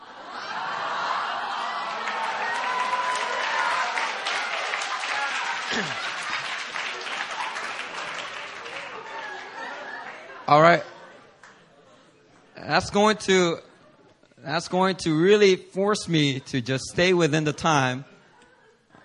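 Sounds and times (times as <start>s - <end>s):
laughter: 0.0s - 2.8s, 3.4s - 12.2s, 16.2s - 19.0s
audience clapping: 1.4s - 10.2s
speech: 5.7s - 6.1s, 10.5s - 10.9s, 12.7s - 13.7s, 14.4s - 18.1s.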